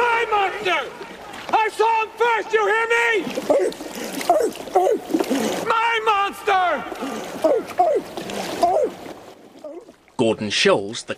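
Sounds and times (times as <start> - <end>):
water splashing as a man swims away: 0.0 - 11.1
speech: 0.6 - 8.1, 10.2 - 11.1
man shouting with barking-like yelps: 1.6 - 5.0, 5.6 - 9.0.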